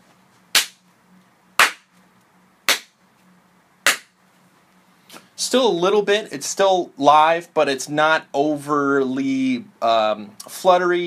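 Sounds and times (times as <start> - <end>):
hand claps for room reverb test: 0.6 - 0.8, 1.6 - 1.9, 2.7 - 2.9, 3.9 - 4.1
speech: 5.4 - 11.0.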